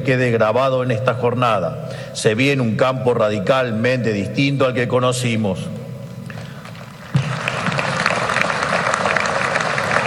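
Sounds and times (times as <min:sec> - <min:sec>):
speech: 0:00.0 - 0:05.8
audience applause: 0:07.0 - 0:10.0.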